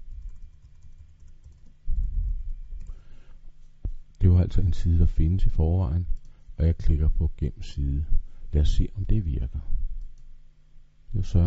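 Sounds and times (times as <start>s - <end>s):
typing on a computer keyboard: 0.0s - 1.8s
speech: 4.4s - 9.8s, 11.1s - 11.4s.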